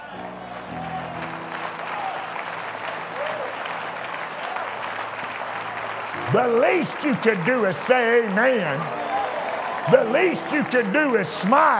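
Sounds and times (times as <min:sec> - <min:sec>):
church audience applause: 0:00.0 - 0:11.7
speech: 0:06.3 - 0:09.1, 0:09.8 - 0:11.7.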